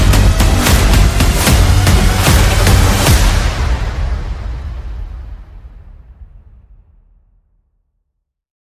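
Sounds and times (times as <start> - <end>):
bass: 0.0 - 6.0
percussion: 0.0 - 6.2
sound effects: 0.0 - 7.0.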